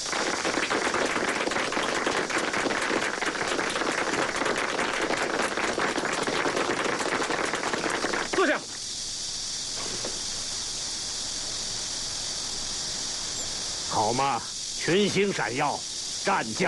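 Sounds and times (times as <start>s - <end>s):
crowd applauding enthusiastically: 0.0s - 8.7s
speech: 14.3s - 16.6s.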